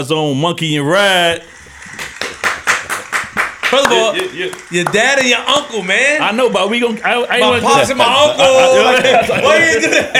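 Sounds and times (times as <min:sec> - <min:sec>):
speech: 0:00.0 - 0:01.6, 0:03.7 - 0:10.1
applause: 0:01.9 - 0:05.4
laughter: 0:07.3 - 0:10.1.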